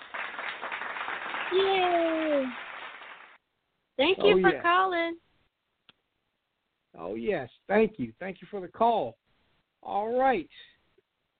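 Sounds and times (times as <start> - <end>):
clapping sound effect: 0.0 - 3.4
speech: 1.5 - 2.6, 4.0 - 5.2, 7.0 - 9.2, 9.8 - 10.7.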